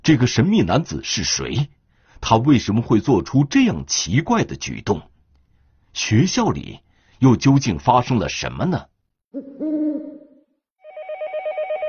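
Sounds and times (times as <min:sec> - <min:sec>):
speech: 0:00.0 - 0:05.1, 0:06.0 - 0:09.6
low hoot-like tone: 0:09.4 - 0:11.8
telephone ringing with a rapid warbling electronic trill: 0:10.8 - 0:11.8.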